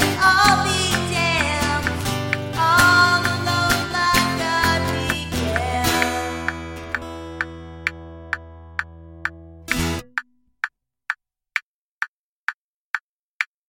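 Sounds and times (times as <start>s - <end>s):
vocals with reverb: 0.0s - 7.3s
metronome noise: 0.0s - 11.2s.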